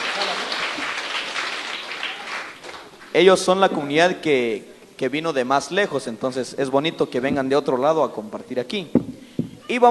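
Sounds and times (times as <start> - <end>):
community gathering applause welcoming a visiting group: 0.0 - 3.2
speech: 3.2 - 9.1, 9.7 - 9.9.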